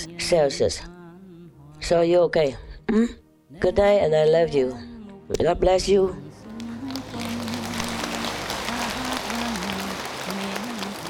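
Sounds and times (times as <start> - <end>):
speech: 0.1 - 1.0, 1.8 - 6.2
clapping: 6.6 - 11.0.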